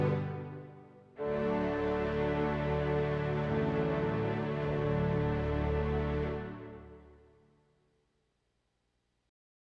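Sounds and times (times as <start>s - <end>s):
strings: 0.0s - 7.5s.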